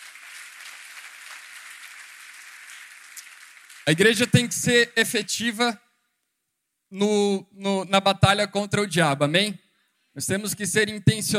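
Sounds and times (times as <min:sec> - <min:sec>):
audience applause: 0:00.0 - 0:05.0
speech: 0:03.9 - 0:05.8, 0:06.9 - 0:09.6, 0:10.2 - 0:11.3.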